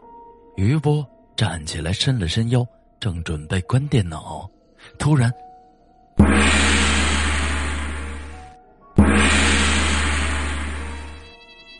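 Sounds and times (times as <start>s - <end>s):
speech: 0.6s - 5.5s
gongs and drums: 6.2s - 11.2s.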